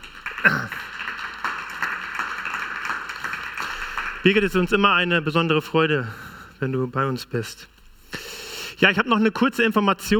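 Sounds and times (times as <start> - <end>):
crowd applauding: 0.0 - 5.0
speech: 0.4 - 0.9, 4.2 - 7.8, 8.8 - 10.1.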